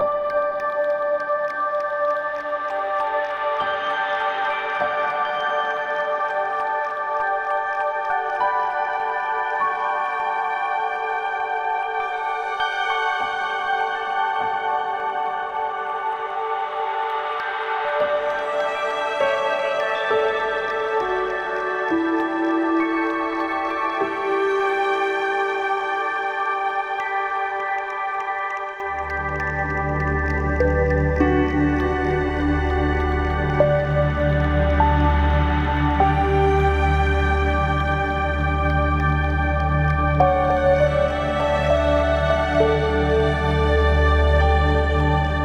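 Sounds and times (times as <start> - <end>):
ambient music: 0.0 - 45.4.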